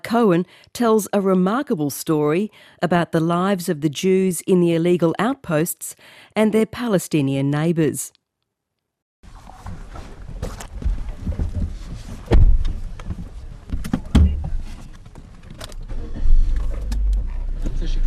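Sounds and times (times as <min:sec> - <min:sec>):
speech: 0:00.0 - 0:08.2
car thumps and bumps: 0:09.6 - 0:17.8
car engine and road rumble driving into the West Bank: 0:12.3 - 0:18.0.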